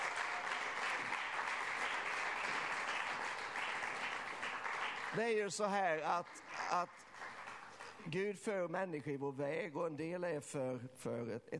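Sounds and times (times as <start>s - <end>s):
large audience applause: 0.0s - 8.0s
speech: 5.1s - 7.2s, 8.0s - 11.5s.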